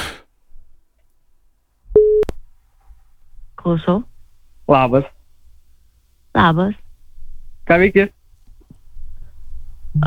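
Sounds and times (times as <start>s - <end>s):
telephone ringback tone: 2.0s - 2.3s
speech: 3.6s - 4.1s, 4.7s - 5.2s, 6.4s - 6.8s, 7.7s - 8.2s.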